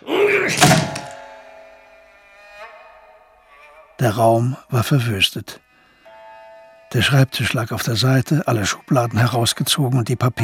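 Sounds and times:
heavy booming thuds against a locked study door: 0.6s - 1.2s
speech: 4.0s - 5.6s, 6.9s - 10.4s.

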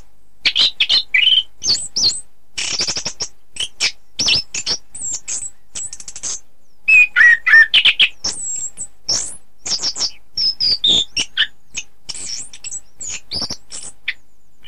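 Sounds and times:
Oriental magpie-robin singing: 0.0s - 14.6s.

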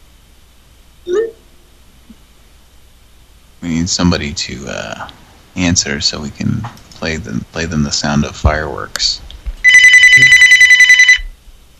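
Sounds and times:
speech: 3.6s - 9.3s, 10.2s - 10.4s
telephone ringing with a trilling electronic bell: 9.6s - 11.3s.

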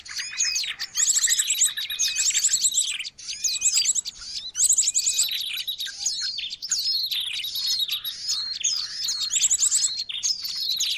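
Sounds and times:
bird chirping and trilling: 0.0s - 10.9s.

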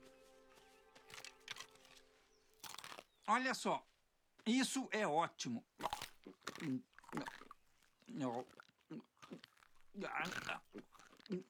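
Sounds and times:
person chewing food: 1.0s - 3.3s, 5.7s - 11.4s
speech: 3.3s - 3.9s, 4.5s - 7.4s, 8.1s - 11.4s.

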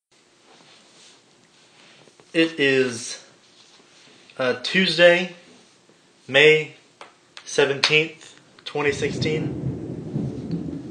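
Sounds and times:
speech: 2.3s - 3.2s, 4.4s - 5.4s, 6.3s - 6.8s, 7.5s - 9.6s
thunder rumbling from a thunderstorm: 8.8s - 10.8s.

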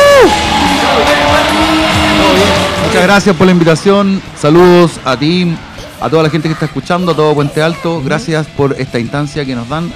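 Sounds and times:
loud sharp whoop swooping downward in pitch: 0.0s - 2.8s
crowd cheering and clapping sound effect: 0.0s - 3.8s
speech: 3.0s - 9.9s.

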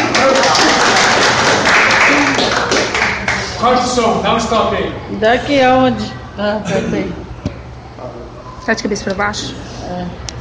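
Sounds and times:
applause at CEU Jambeiro: 0.0s - 3.5s
speech: 3.6s - 7.2s, 8.7s - 10.3s.

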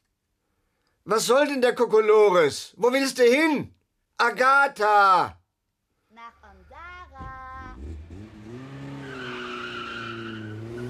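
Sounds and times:
speech: 1.0s - 5.4s
car engine roaring: 7.2s - 10.8s
car tires screeching: 7.2s - 10.8s.

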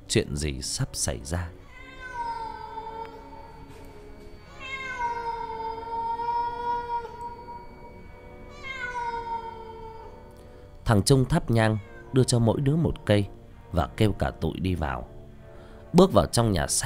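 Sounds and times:
speech: 0.1s - 1.6s, 10.9s - 15.1s, 15.9s - 16.8s
cat meowing plaintively: 1.5s - 10.3s, 11.5s - 12.5s.

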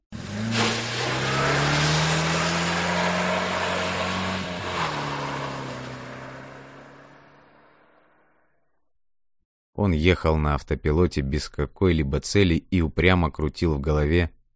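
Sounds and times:
car engine starting and accelerating: 0.1s - 8.3s
speech: 9.8s - 14.4s.

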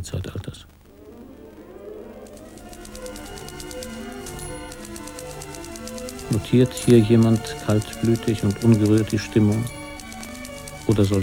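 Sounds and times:
speech: 0.0s - 0.6s, 6.3s - 9.8s, 10.9s - 11.2s
soft sustained music: 1.2s - 11.2s
typewriter keys clattering: 2.4s - 11.2s.

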